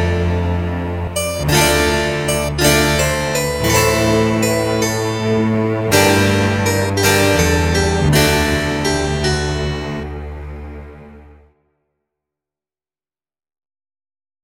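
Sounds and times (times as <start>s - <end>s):
harpsichord: 0.0s - 11.4s
strings: 0.0s - 11.5s.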